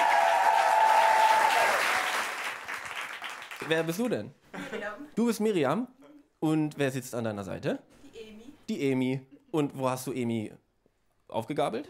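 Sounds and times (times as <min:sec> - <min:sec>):
audience applauding a performer after a stage set: 0:00.0 - 0:04.0
speech: 0:03.6 - 0:08.0, 0:08.7 - 0:10.6, 0:11.3 - 0:11.8.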